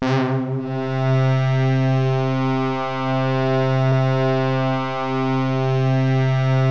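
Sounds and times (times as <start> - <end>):
Ensoniq VFX synth horns: 0.0 - 6.6.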